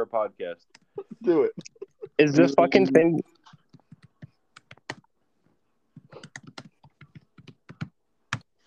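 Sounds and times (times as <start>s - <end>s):
speech: 0.0s - 3.4s
typing a reply on a computer keyboard: 3.6s - 5.1s, 6.0s - 8.5s.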